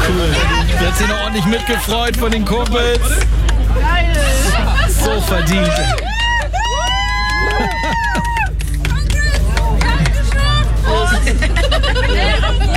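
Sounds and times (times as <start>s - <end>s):
group of friends cheering and chattering: 0.0s - 12.7s
laughter: 0.0s - 12.7s
steady low rumble: 0.0s - 12.7s
speech: 0.9s - 6.2s
whoops: 5.8s - 8.8s.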